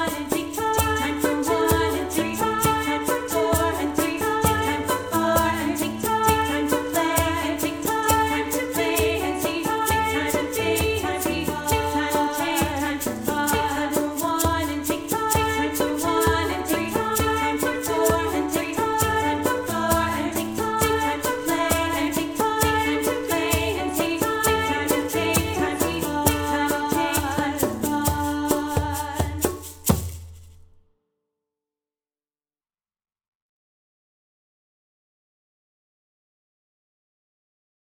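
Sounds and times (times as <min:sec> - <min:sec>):
separated vocal parts: 0:00.0 - 0:29.4.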